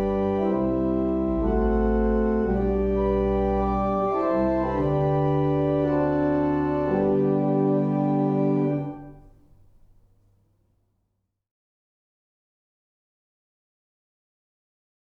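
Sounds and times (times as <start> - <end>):
barrel organs playing a morning hymn: 0.0 - 9.4.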